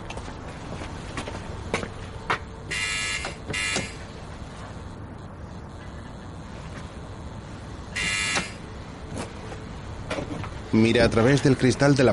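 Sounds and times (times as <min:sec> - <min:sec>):
intercom door buzzer ringing: 0:02.7 - 0:04.0, 0:08.0 - 0:08.6
speech: 0:10.8 - 0:12.1.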